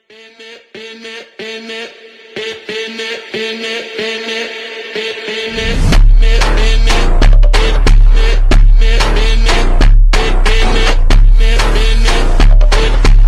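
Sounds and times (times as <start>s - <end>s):
trending background music ringtone: 6.2s - 13.2s.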